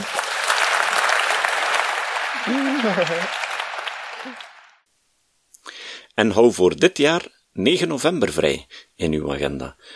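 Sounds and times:
thunderous audience applause: 0.0 - 4.8
laughter: 2.4 - 3.4
speech: 2.5 - 3.4, 4.2 - 4.5, 6.2 - 9.9.

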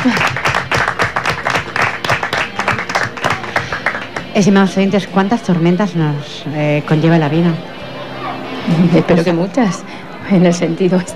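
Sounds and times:
laughter: 0.0 - 4.2, 8.0 - 9.8
audience applause: 0.0 - 4.4
speech: 4.4 - 7.8, 8.7 - 11.1.

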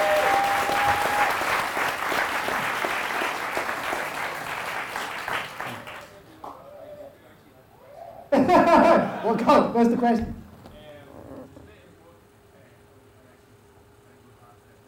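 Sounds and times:
round of applause: 0.0 - 6.5
laughter: 8.3 - 9.5
speech: 9.3 - 10.4.

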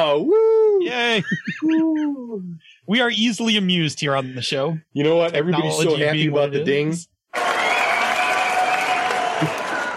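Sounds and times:
speech: 0.0 - 7.1, 9.4 - 9.6
audience applause sound effect played from a Stream Deck: 7.3 - 9.9.

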